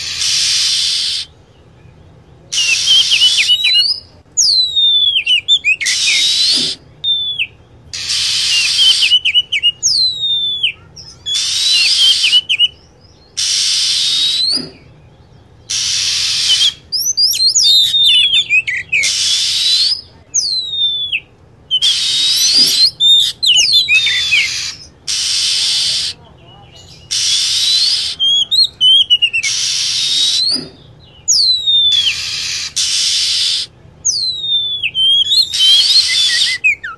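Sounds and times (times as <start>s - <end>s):
lovebird screeching and chirping: 0.0s - 1.4s, 2.5s - 15.0s, 15.7s - 26.2s, 26.8s - 36.9s.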